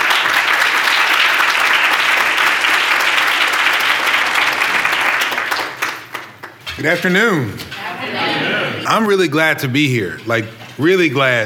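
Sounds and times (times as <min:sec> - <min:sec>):
audience applause welcoming a reverend to the podium: 0:00.0 - 0:07.1
speech: 0:06.8 - 0:11.4.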